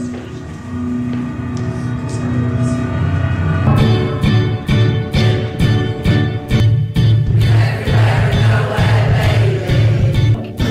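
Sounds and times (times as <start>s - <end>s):
steady rhythmic beat: 0.2s - 10.7s
amateur choir singing a pop song: 7.3s - 10.7s.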